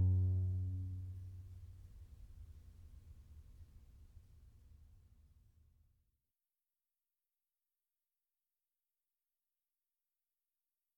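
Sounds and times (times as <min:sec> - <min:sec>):
unaccompanied cello playing a gigue: 0:00.0 - 0:01.1.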